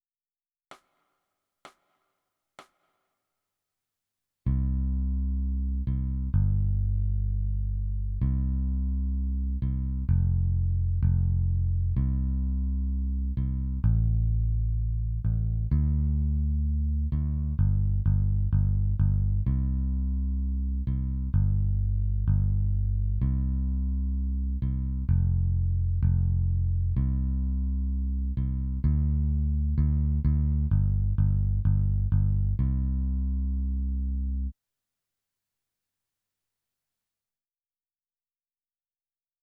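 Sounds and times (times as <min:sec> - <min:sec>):
bass: 0:04.5 - 0:34.5.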